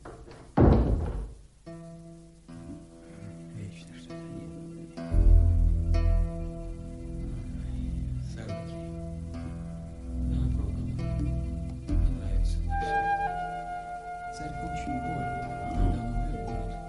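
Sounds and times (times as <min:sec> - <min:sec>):
door shutting with a heavy booming thud: 0:00.0 - 0:01.5
sustained low musical tones: 0:01.6 - 0:16.8.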